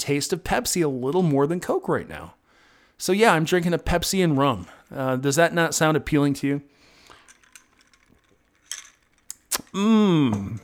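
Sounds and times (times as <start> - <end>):
speech: 0.0 - 2.4, 3.0 - 6.7, 9.8 - 10.6
ice cubes jingling in cup: 6.9 - 9.8.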